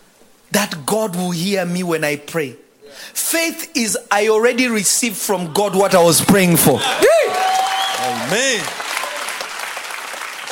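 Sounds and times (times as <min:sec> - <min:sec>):
speech: 0:00.5 - 0:08.8
crowd applause: 0:05.4 - 0:10.5.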